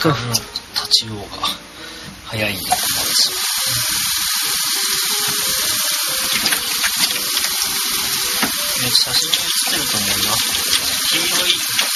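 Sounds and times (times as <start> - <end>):
speech: 0.0 - 11.9
hot water pouring into a yellow container: 2.5 - 11.9.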